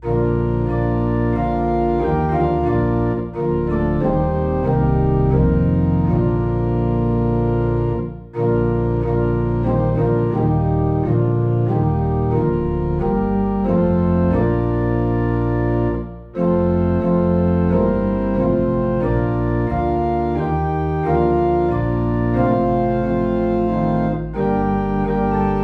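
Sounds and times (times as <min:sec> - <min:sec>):
low organ note in B flat: 0:00.0 - 0:25.6.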